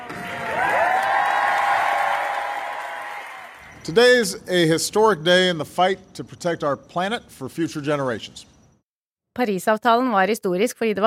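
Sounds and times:
applause in conference hall: 0.0s - 4.1s
crowd cheering in conference hall: 0.0s - 6.0s
speech: 3.9s - 8.5s, 9.4s - 11.0s.

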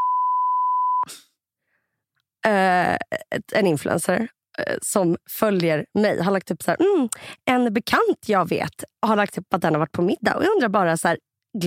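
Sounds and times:
censor bleep over words in a Swedish conversation: 0.0s - 1.1s
person breathing: 1.1s - 2.0s
speech: 3.4s - 11.6s.

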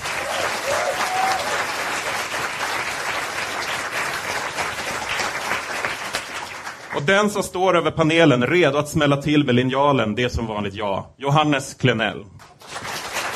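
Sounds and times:
audience applause: 0.0s - 7.0s, 12.4s - 13.3s
speech: 7.0s - 12.4s.

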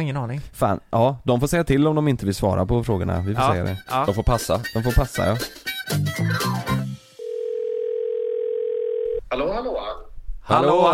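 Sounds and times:
speech: 0.0s - 6.9s, 9.3s - 10.9s
telephone dial tone while calling someone: 7.2s - 9.2s.

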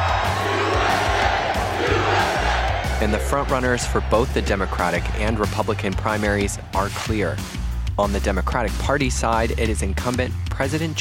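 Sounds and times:
big crowd cheering and shouting: 0.0s - 7.6s
speech: 3.0s - 11.0s.

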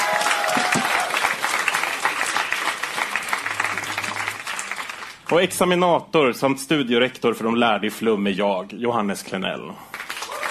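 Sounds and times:
audience applause: 0.0s - 5.5s, 9.9s - 10.5s
speech: 5.3s - 9.9s.

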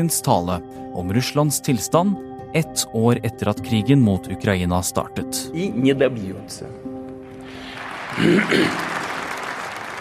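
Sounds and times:
speech: 0.0s - 6.9s, 8.2s - 9.0s
applause in the large hall Manesjen in Moscow: 7.3s - 10.0s.

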